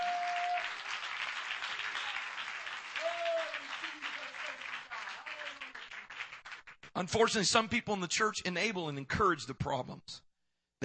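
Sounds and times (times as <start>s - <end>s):
audience clapping hands: 0.0s - 7.3s
speech: 7.0s - 10.8s.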